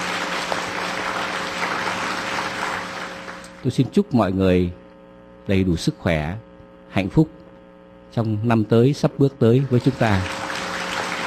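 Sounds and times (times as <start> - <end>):
audience applause: 0.0 - 3.6, 9.7 - 11.2
speech: 3.6 - 4.8, 5.5 - 7.4, 8.1 - 10.4.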